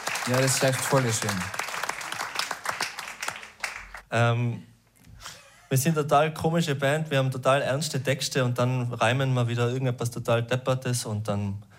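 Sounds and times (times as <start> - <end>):
audience applause: 0.0 - 4.0
speech: 0.2 - 1.6, 4.1 - 4.7, 5.7 - 11.7.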